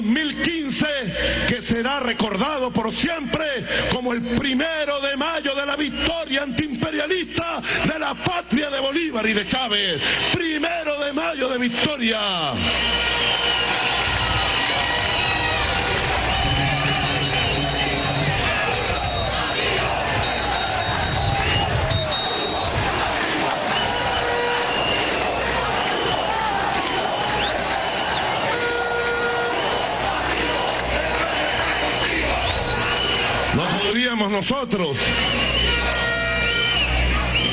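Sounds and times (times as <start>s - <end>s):
speech: 0.0s - 13.5s, 34.1s - 35.3s
crowd of a May Day 2015 march in Venezuela cheering: 11.6s - 37.5s.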